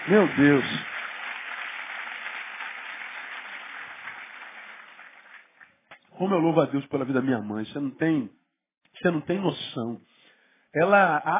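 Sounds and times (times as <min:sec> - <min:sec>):
audience applause: 0:00.0 - 0:05.8
speech: 0:00.1 - 0:00.9, 0:06.2 - 0:08.4, 0:09.0 - 0:10.1, 0:10.7 - 0:11.3.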